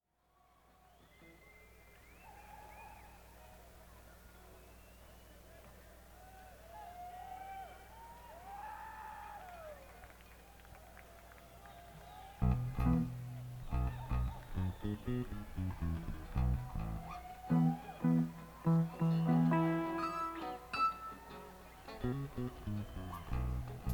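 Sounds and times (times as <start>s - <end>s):
instrument tuning: 12.4s - 23.9s.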